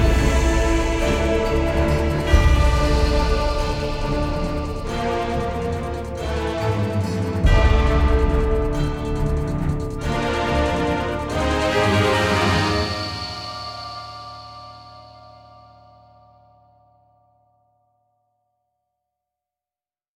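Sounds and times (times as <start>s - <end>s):
battle music loop: 0.0s - 15.1s.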